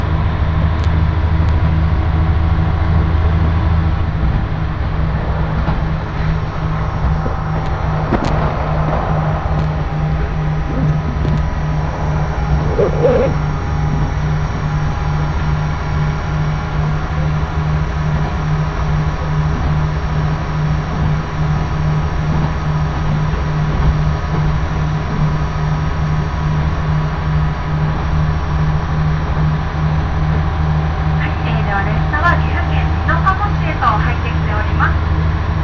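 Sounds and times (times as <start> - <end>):
Nagara Railway train engine between Mino-shi and Mino-Ota: 0.0 - 35.6
bright squeaks and ticks: 12.5 - 14.2.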